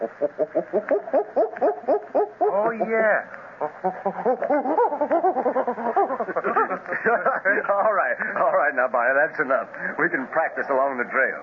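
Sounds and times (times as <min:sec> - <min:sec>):
speech: 0:00.0 - 0:01.4, 0:02.8 - 0:05.0, 0:07.5 - 0:11.4
person imitating gorilla barking with throaty hoots: 0:00.0 - 0:03.0, 0:03.6 - 0:06.6
laughter: 0:03.8 - 0:08.5.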